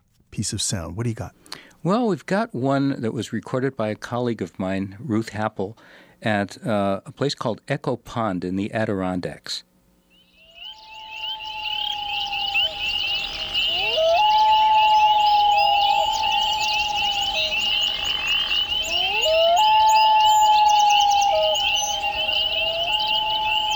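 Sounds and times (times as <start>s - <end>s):
speech: 0.4s - 9.7s
loons calling: 10.1s - 23.7s.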